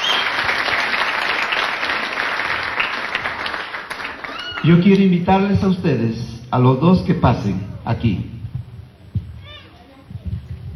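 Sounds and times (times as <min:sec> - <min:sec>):
people clapping: 0:00.0 - 0:05.2
speech: 0:04.6 - 0:08.4.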